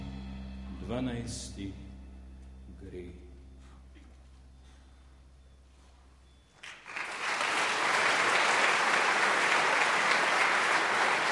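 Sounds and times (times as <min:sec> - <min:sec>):
speech: 0:00.9 - 0:01.9, 0:02.8 - 0:03.3
enthusiastic applause of a crowd: 0:06.6 - 0:11.3.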